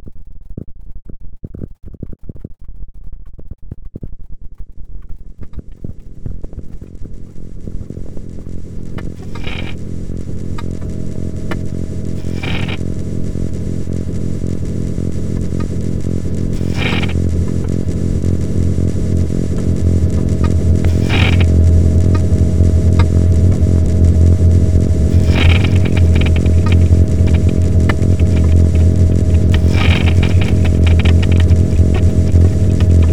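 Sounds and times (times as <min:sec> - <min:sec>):
granular texture: 0:06.9 - 0:33.1.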